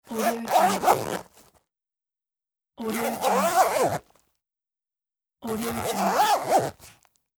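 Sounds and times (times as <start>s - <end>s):
travel organizer bag zipper: 0.0s - 1.6s, 2.8s - 4.2s, 5.4s - 7.1s.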